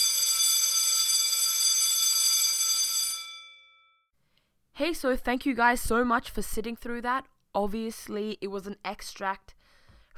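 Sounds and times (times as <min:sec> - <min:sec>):
school bell ringing: 0:00.0 - 0:04.0
speech: 0:04.8 - 0:09.6.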